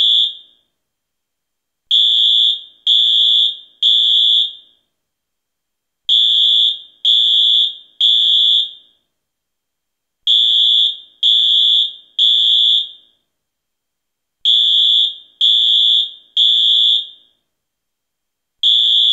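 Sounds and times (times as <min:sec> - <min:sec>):
fire alarm: 0:00.0 - 0:00.7, 0:01.9 - 0:04.9, 0:06.1 - 0:09.1, 0:10.3 - 0:13.3, 0:14.4 - 0:17.4, 0:18.6 - 0:19.1.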